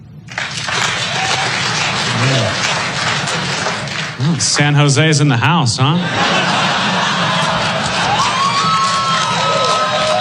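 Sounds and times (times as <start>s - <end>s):
audience clapping hands: 0.0s - 10.1s
laughter: 0.5s - 10.1s
speech: 4.4s - 6.6s.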